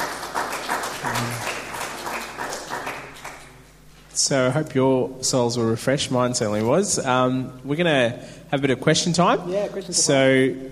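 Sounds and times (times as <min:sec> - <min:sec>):
crowd applauding: 0:00.0 - 0:03.6
speech: 0:04.2 - 0:10.7.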